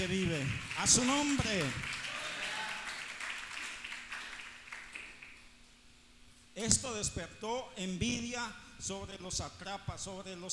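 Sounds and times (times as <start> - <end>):
speech: 0.0 - 1.9, 6.6 - 10.5
applause: 0.0 - 5.5.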